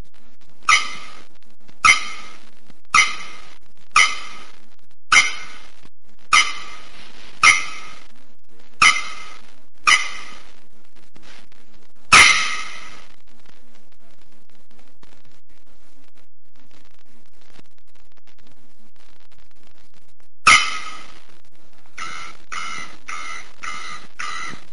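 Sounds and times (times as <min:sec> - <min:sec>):
bearded bellbird clanging calls: 0:00.7 - 0:01.2, 0:01.9 - 0:02.4, 0:03.0 - 0:04.5, 0:05.1 - 0:05.6, 0:06.4 - 0:08.0, 0:08.8 - 0:10.4, 0:12.2 - 0:13.0, 0:20.5 - 0:21.1, 0:22.0 - 0:24.6.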